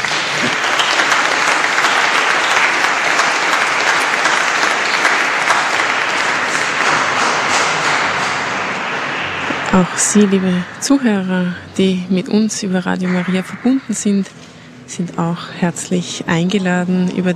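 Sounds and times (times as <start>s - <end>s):
audience applause: 0.0s - 11.3s
speech: 9.8s - 17.3s.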